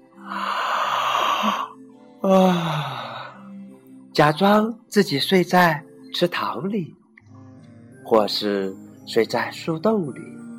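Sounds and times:
big yawn: 0:00.2 - 0:03.5
speech: 0:02.2 - 0:02.8, 0:04.2 - 0:07.0, 0:08.1 - 0:10.4.

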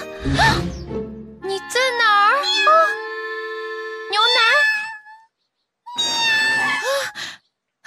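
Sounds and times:
speech: 0:00.3 - 0:00.8
cat meowing: 0:02.3 - 0:03.1, 0:04.1 - 0:05.3, 0:05.9 - 0:07.0.

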